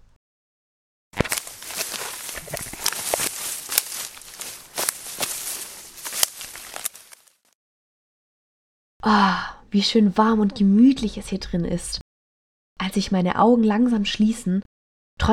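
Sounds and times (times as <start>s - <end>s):
footsteps crunching through fallen autumn leaves: 1.2s - 7.5s
speech: 9.0s - 12.0s, 12.8s - 15.3s.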